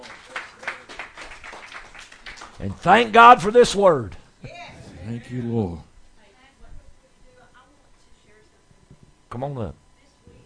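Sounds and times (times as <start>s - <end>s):
audience clapping: 0.0s - 3.5s
speech: 2.6s - 4.2s, 5.1s - 5.9s, 9.4s - 9.8s.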